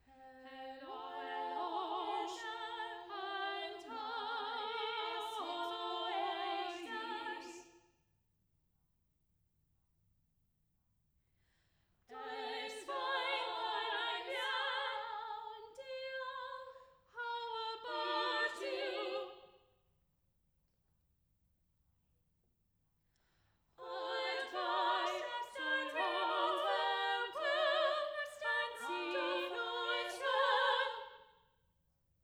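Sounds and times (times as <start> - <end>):
vocal trio: 0.1 - 7.6, 12.1 - 19.4, 23.8 - 31.2.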